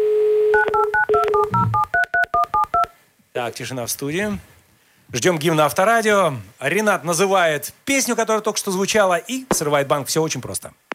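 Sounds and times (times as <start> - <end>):
telephone dialing tones: 0.5 - 2.9
speech: 3.4 - 10.8.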